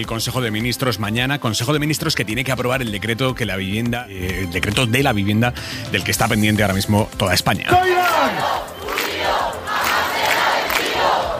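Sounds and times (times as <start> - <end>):
speech: 0.0 - 8.7
protest campers chanting in Puerta del Sol: 8.0 - 11.3.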